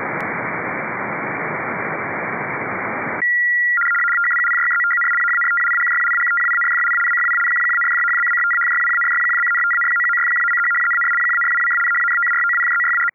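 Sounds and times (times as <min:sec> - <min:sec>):
RTTY radioteletype signal: 0:00.1 - 0:13.1
CW morse code tones: 0:03.2 - 0:13.1.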